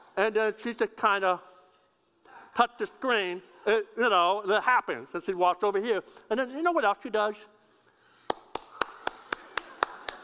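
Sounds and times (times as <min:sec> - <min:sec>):
speech: 0:00.2 - 0:01.5, 0:02.6 - 0:07.5
hand claps: 0:08.2 - 0:10.2.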